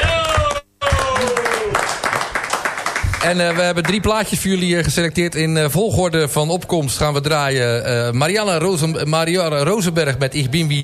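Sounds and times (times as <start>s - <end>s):
audience applause: 0.0s - 4.1s
speech: 3.2s - 10.8s.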